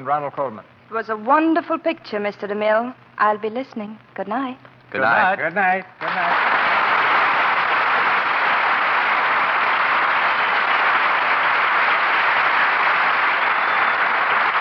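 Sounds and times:
speech: 0.0s - 6.5s
studio audience applause: 6.0s - 14.5s.

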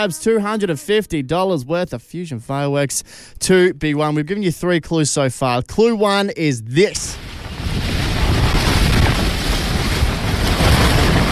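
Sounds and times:
speech: 0.0s - 8.0s
strong cyclone wind: 7.0s - 11.2s.

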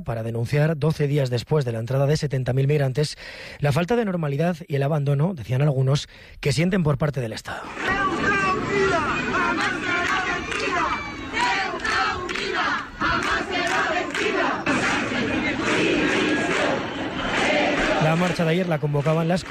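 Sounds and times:
speech: 0.0s - 8.1s, 18.2s - 19.5s
protest crowd in Ceuta chanting for Pedro Sánchez's resignation: 7.6s - 19.5s.

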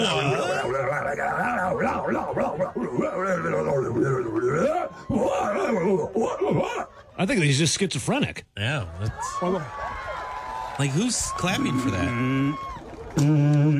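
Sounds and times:
human voice imitating a full moon howl: 0.0s - 6.9s, 11.4s - 13.7s
speech: 1.1s - 10.0s, 10.8s - 13.7s.

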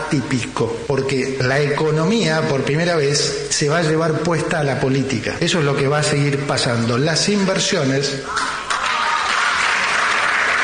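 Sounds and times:
speech: 0.1s - 8.7s
audience applause: 8.3s - 10.6s.

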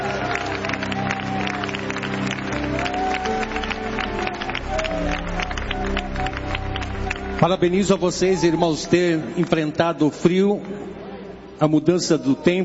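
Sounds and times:
loud audience applause: 0.0s - 9.8s
speech: 7.4s - 10.9s, 11.6s - 12.6s.

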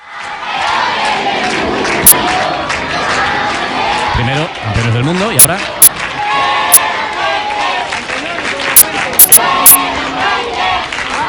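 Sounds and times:
stadium crowd chanting names: 0.0s - 11.2s
speech: 4.3s - 5.8s.

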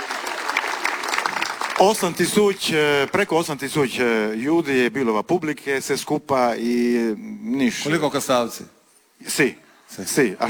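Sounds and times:
audience applause at Kastav Cultural Summer festival 35th-anniversary celebration: 0.0s - 3.3s
speech: 1.8s - 10.4s.

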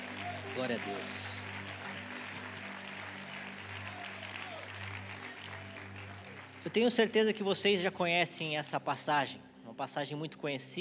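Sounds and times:
audience applause: 0.0s - 7.2s
speech: 0.6s - 1.4s, 6.6s - 10.7s.

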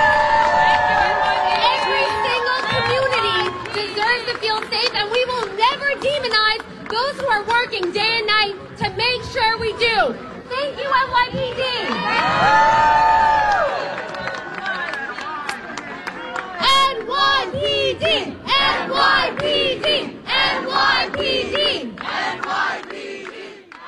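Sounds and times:
crowd cheering and shouting: 0.0s - 4.4s, 10.6s - 21.9s
scattered clapping: 0.2s - 8.5s, 13.5s - 17.4s, 19.2s - 23.8s
speech: 7.3s - 13.6s.

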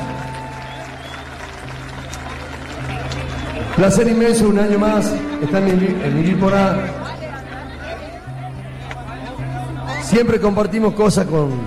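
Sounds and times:
audience applause: 0.0s - 6.0s
speech: 3.8s - 7.0s, 10.1s - 11.6s.

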